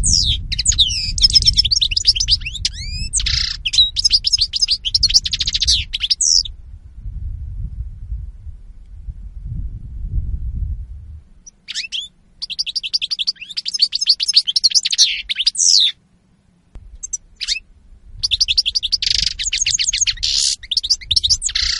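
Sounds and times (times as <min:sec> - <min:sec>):
European goldfinch twittering song: 0:00.0 - 0:06.5, 0:11.4 - 0:16.0, 0:17.0 - 0:21.7
low rumble: 0:00.0 - 0:11.5, 0:16.6 - 0:20.2.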